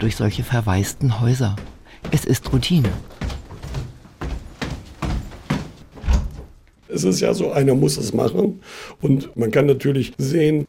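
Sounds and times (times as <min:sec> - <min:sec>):
speech: 0:00.0 - 0:03.2, 0:06.9 - 0:10.6
upstairs bedroom door being closed: 0:05.0 - 0:06.6.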